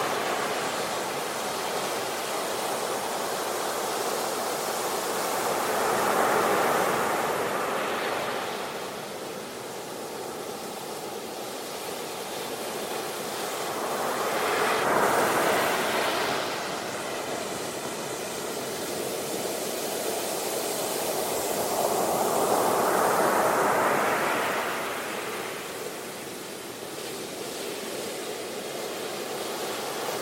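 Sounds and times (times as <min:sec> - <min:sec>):
ocean waves: 0:00.0 - 0:30.2.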